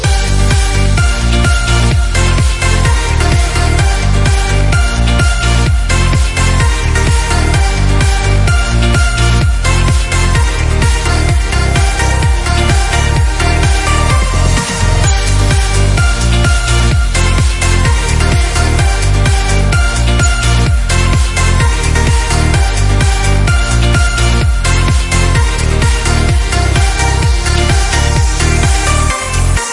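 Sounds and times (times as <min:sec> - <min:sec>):
energetic summer ringtone: 0:00.1 - 0:29.6.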